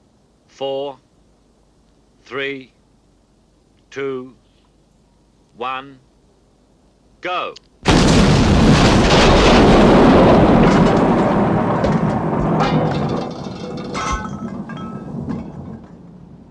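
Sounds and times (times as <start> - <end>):
speech: 0.6 - 1.1, 2.2 - 2.8, 3.9 - 4.4, 5.6 - 6.1, 7.2 - 7.9
explosion blowing doors off: 7.9 - 15.8
crackles and clattering debris: 7.9 - 16.4.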